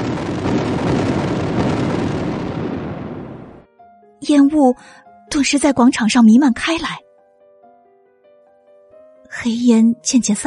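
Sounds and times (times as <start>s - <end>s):
series of ammunition explosions: 0.0s - 3.6s
speech: 4.3s - 7.0s, 9.3s - 10.4s.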